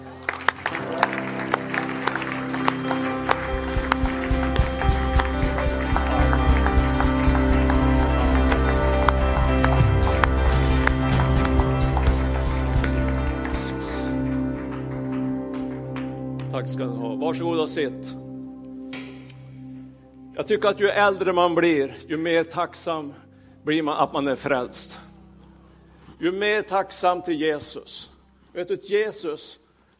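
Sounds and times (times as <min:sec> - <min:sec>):
audience applause: 0:00.0 - 0:16.5
speech: 0:16.8 - 0:18.2, 0:20.4 - 0:25.0, 0:26.2 - 0:29.9.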